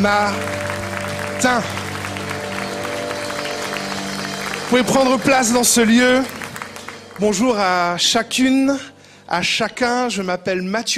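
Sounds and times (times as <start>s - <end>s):
speech: 0.0s - 0.7s, 1.4s - 1.8s, 4.7s - 6.4s, 7.2s - 10.9s
church congregation applauding in acclamation during worship: 0.0s - 8.7s
held musical tones: 0.0s - 8.8s.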